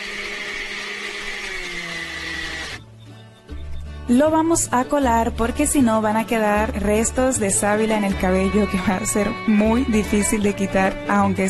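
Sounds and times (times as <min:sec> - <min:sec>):
blender liquefying aloe vera gel: 0:00.0 - 0:02.8
speech: 0:04.1 - 0:11.4.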